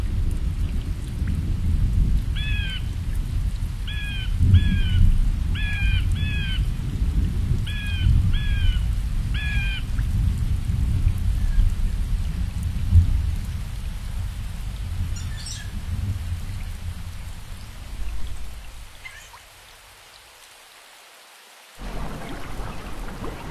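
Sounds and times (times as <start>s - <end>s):
heavy rain falling in a rainforest: 0.0s - 23.4s
bird repeating a two-part whistled call: 15.2s - 15.7s.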